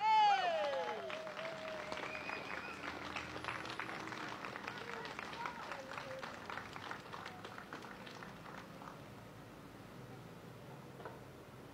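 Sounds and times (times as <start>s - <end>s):
falling vocal whoop: 0.0s - 2.8s
audience clapping greeting a speaker: 0.3s - 9.1s.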